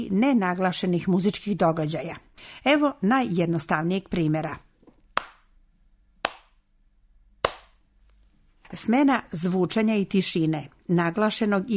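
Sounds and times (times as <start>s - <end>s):
speech: 0.0s - 4.7s, 8.7s - 11.7s
hand claps demonstrating a basic rhythm in a music lesson: 5.2s - 5.4s, 6.2s - 6.6s, 7.4s - 7.8s.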